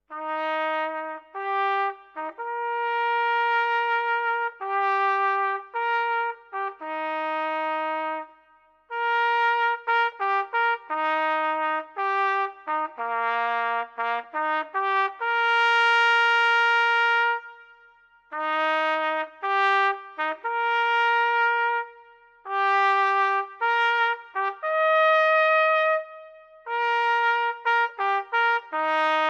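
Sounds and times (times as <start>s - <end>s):
town trumpet call: 0.1s - 29.2s.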